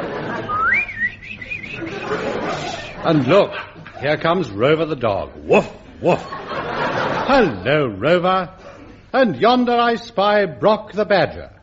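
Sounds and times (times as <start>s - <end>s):
laughter: 0.0s - 4.7s, 5.4s - 9.1s
person whistling imitating birds twittering: 0.5s - 2.1s
speech: 3.0s - 6.4s, 7.3s - 11.6s.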